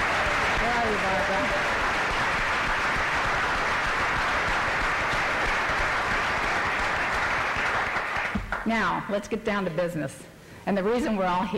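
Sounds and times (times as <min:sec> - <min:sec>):
audience applause: 0:00.0 - 0:08.7
speech: 0:08.7 - 0:11.5.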